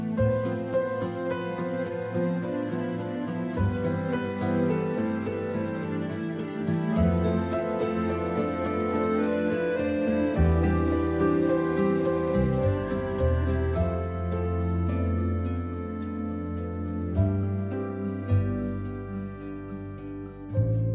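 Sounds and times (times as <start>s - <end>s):
ringtone: 0.2s - 20.8s.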